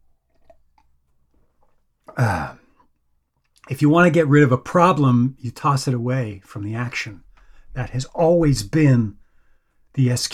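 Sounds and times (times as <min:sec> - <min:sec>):
throat clearing from someone with a tickle in the throat: 0:02.1 - 0:02.8
speech: 0:02.2 - 0:02.6, 0:03.7 - 0:09.2, 0:10.0 - 0:10.3
faint small clicks: 0:02.8 - 0:03.8.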